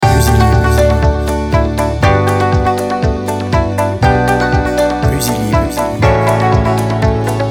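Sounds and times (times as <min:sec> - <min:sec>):
positive jingle: 0:00.0 - 0:02.5, 0:03.3 - 0:07.4.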